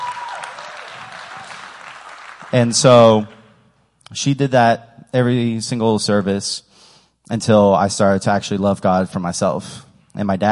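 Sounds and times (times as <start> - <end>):
audience applause: 0.0 - 3.4
speech: 2.5 - 3.4, 4.1 - 6.7, 7.3 - 10.5.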